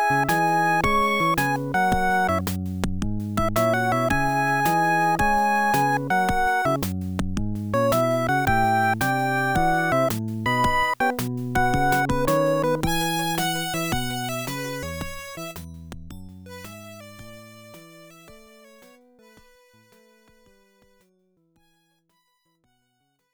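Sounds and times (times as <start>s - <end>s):
jazz music: 0.0s - 15.7s.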